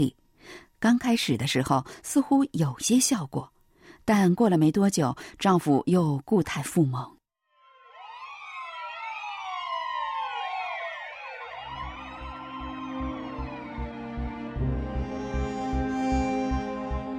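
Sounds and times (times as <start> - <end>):
speech: 0.0 - 7.2
police car siren: 7.5 - 17.1.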